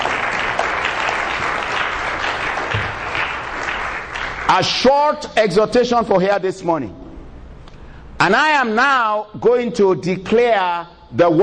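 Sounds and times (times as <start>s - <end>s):
audience clapping: 0.0s - 5.2s
speech: 4.5s - 7.0s, 8.2s - 11.4s.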